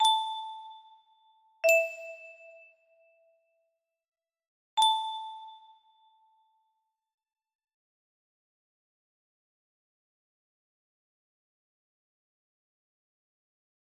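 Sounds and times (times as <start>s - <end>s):
music box melody: 0.0s - 2.8s, 4.8s - 6.1s.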